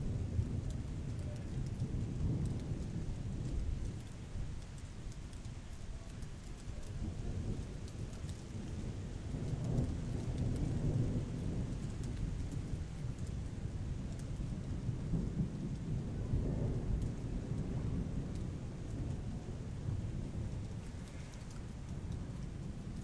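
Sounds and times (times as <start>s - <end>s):
thunderstorm: 0.0s - 23.0s.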